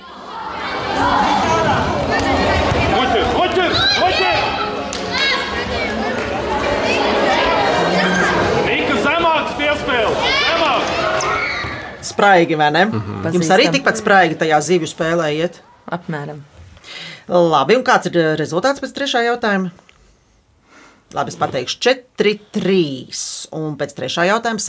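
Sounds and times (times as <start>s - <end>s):
crowd at a dodgeball game court chatter and shouts: 0.0s - 12.2s
speech: 12.2s - 19.8s, 21.1s - 24.6s.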